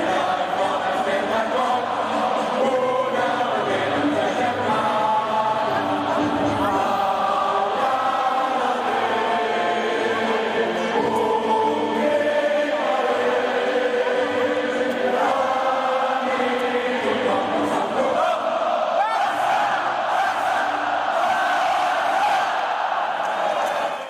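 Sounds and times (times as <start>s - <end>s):
stadium crowd singing football club anthem in unison: 0.0s - 24.0s
occasional shouts rising above the stadium crowd: 18.1s - 24.0s.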